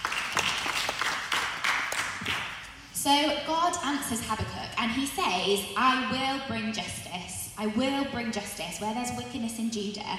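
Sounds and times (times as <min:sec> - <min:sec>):
church audience scattered applause: 0:00.0 - 0:02.6
speech: 0:03.0 - 0:10.1.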